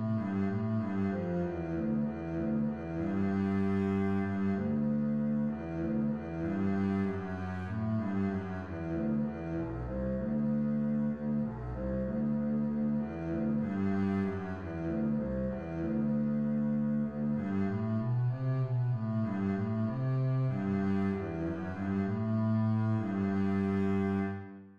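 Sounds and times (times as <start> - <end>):
string bass: 0.0 - 24.7.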